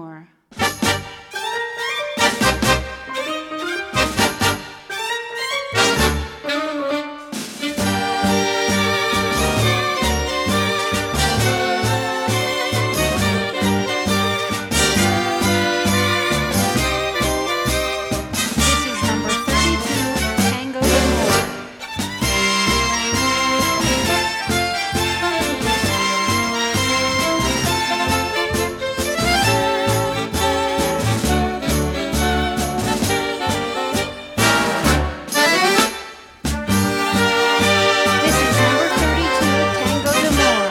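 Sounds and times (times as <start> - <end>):
tango music: 0.5 - 40.6.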